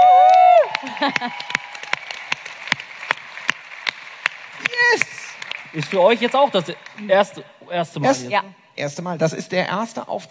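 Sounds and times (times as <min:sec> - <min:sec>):
applause: 0:00.0 - 0:07.4
speech: 0:01.0 - 0:01.5, 0:04.9 - 0:05.1, 0:05.7 - 0:10.2.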